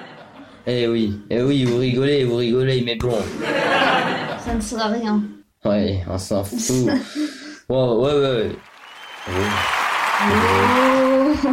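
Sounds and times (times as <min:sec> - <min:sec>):
laughter: 0:00.0 - 0:00.5, 0:03.2 - 0:04.6
speech: 0:00.6 - 0:10.8
crowd applause: 0:08.5 - 0:11.5.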